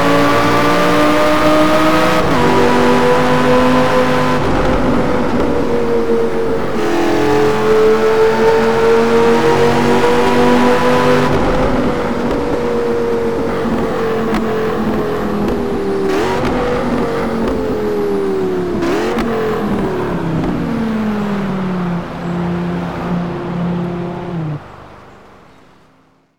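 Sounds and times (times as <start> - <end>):
Audi R8 LMS race car engine: 0.0 - 26.0.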